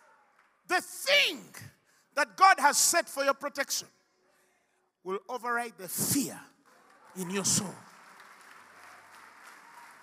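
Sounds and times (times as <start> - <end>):
speech: 0.7 - 4.0, 5.0 - 6.5, 7.1 - 7.9
audience applauding, hand clapping: 6.6 - 10.0.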